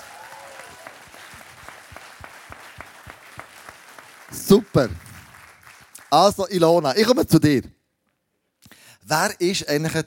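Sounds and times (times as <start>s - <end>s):
audience applause: 0.0s - 6.4s
speech: 4.4s - 5.0s, 6.1s - 7.8s, 9.1s - 10.0s.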